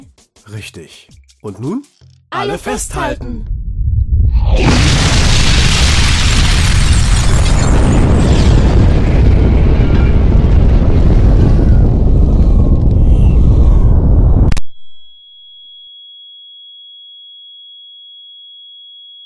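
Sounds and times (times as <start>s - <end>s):
speech: 0.0s - 3.6s, 4.3s - 5.0s
warhead explosion high above a city: 3.2s - 14.6s.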